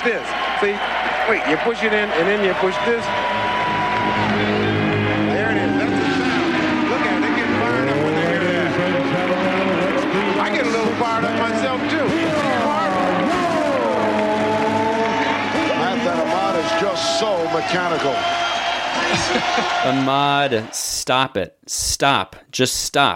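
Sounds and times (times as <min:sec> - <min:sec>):
speech: 0:00.0 - 0:03.4, 0:04.1 - 0:04.8, 0:16.7 - 0:18.5, 0:19.1 - 0:23.1
Indianapolis 500 race car engine sound effect: 0:04.2 - 0:16.3
laughter: 0:18.7 - 0:20.2.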